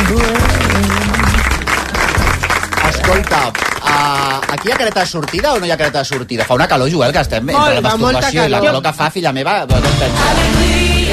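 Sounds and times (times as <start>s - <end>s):
audience applause: 0.0s - 7.0s
speech: 4.2s - 11.1s.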